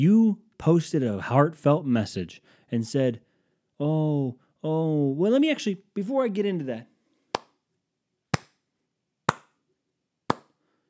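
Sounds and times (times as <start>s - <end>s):
speech: 0.0s - 6.9s
slow clap: 7.3s - 7.6s, 8.3s - 8.6s.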